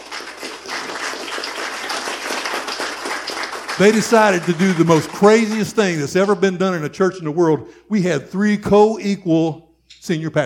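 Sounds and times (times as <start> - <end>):
audience clapping hands: 0.0 - 6.4
speech: 3.8 - 10.4.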